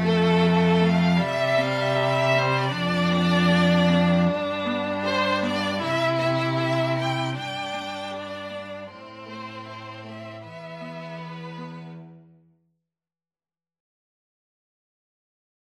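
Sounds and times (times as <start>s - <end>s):
string orchestra: 0.0s - 12.4s.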